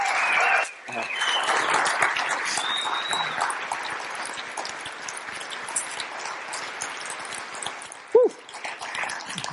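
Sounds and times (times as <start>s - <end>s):
audience cheering: 0.0s - 3.5s
audience applause: 0.0s - 4.3s.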